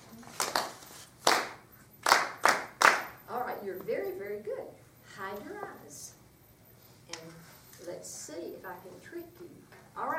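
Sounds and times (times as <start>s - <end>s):
sharp hand claps in an uneven rhythm: 0.3s - 3.2s
speech: 3.7s - 6.2s, 7.8s - 10.1s.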